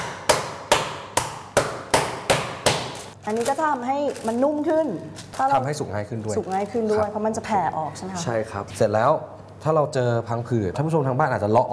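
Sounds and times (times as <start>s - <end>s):
pounding meat with a pot through paper: 0.0s - 3.1s
speech: 3.2s - 11.7s.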